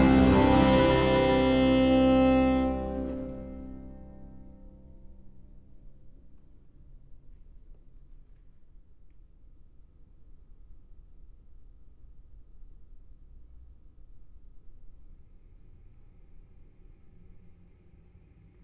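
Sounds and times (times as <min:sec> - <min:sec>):
violin sonata in D major, allegro movement: 0:00.0 - 0:05.1.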